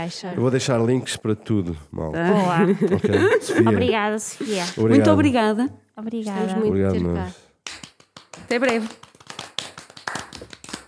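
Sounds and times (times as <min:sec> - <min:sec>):
speech: 0:00.0 - 0:07.4, 0:08.5 - 0:09.0
laughter: 0:02.4 - 0:03.9
hand clapping from a small group: 0:07.6 - 0:10.8.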